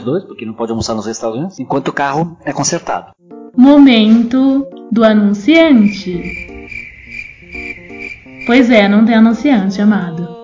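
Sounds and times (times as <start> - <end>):
speech: 0.0 - 6.5, 8.5 - 10.3
crickets trilling in an outdoor town square: 5.7 - 9.3.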